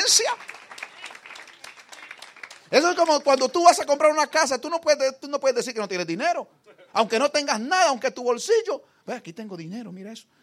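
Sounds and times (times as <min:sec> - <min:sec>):
audience applause: 0:00.0 - 0:03.7
speech: 0:00.1 - 0:00.6, 0:02.7 - 0:10.4.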